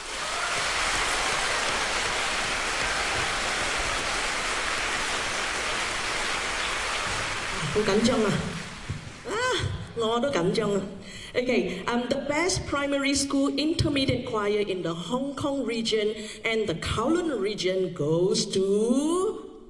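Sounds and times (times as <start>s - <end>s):
audience applause: 0.0s - 9.3s
speech: 7.8s - 8.5s, 10.0s - 19.3s.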